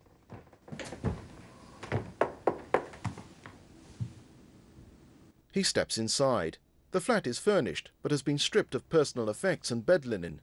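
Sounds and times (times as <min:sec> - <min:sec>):
faint noise: 0:00.0 - 0:10.4
knuckle rapping on a door: 0:00.3 - 0:03.2
speech: 0:05.6 - 0:10.4.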